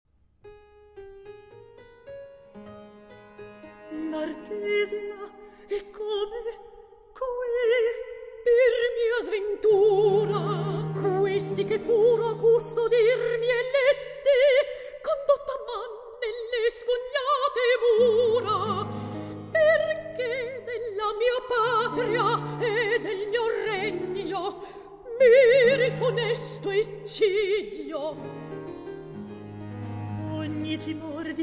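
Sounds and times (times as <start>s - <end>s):
recitative singing: 3.9s - 6.6s, 7.2s - 14.4s, 16.7s - 28.8s, 29.6s - 31.4s.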